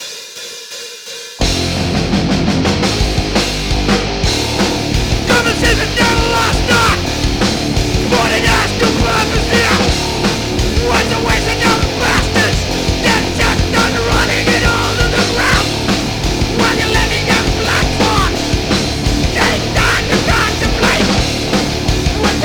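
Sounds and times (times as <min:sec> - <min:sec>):
riot drums: 0:00.0 - 0:22.4
vocals: 0:05.0 - 0:22.4.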